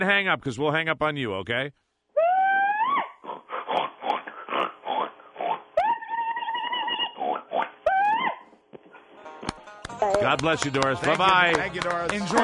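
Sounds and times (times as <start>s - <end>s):
speech: 0.0s - 1.8s, 10.0s - 12.4s
hog calling by a contest champion: 2.2s - 8.5s.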